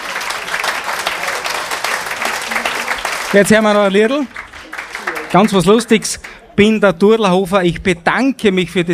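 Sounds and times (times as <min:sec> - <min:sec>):
audience applause: 0:00.0 - 0:06.4
speech: 0:03.3 - 0:04.4, 0:05.3 - 0:08.9.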